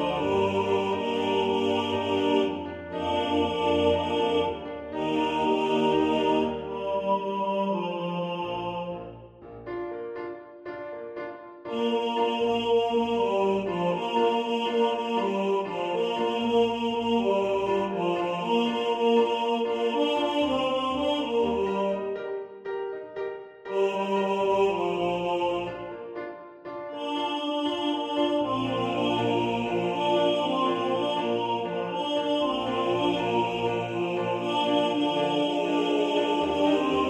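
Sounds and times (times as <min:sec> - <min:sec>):
male choir singing with equally weighted voices for practice: 0:00.0 - 0:09.4, 0:11.7 - 0:22.2, 0:23.7 - 0:26.2, 0:26.9 - 0:37.0.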